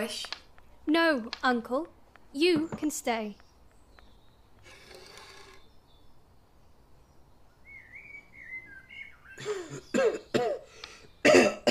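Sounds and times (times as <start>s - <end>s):
speech: 0.0s - 3.4s
coughing: 9.4s - 11.6s.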